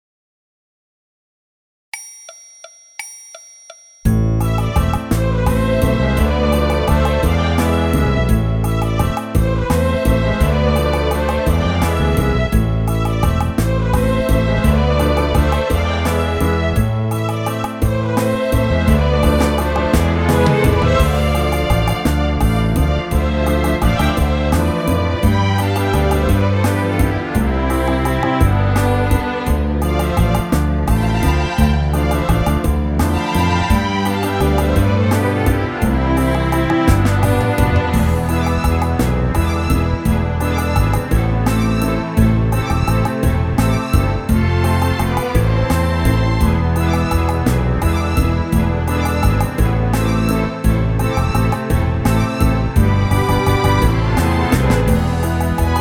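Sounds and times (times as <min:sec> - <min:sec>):
orchestra: 0:04.1 - 0:55.8.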